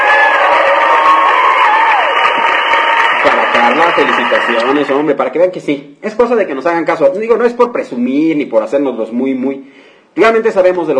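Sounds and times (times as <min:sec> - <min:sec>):
people whooping and shouting: 0:00.0 - 0:04.7
clapping: 0:00.0 - 0:04.9
crowd cheering: 0:00.0 - 0:05.1
speech: 0:03.9 - 0:10.9.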